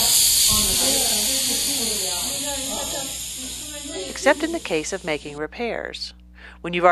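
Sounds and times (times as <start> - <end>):
air hissing out of a tire: 0.0 - 5.2
speech: 3.0 - 6.9.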